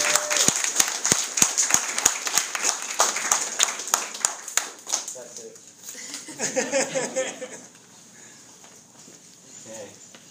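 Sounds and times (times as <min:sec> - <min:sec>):
audience applause: 0:00.0 - 0:05.1
laughter: 0:05.9 - 0:07.8.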